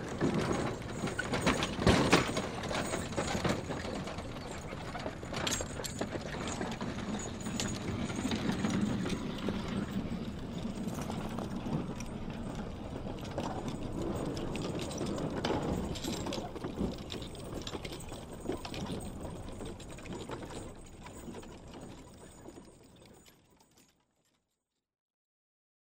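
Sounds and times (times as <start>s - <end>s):
horse cart moving: 0.0s - 24.2s.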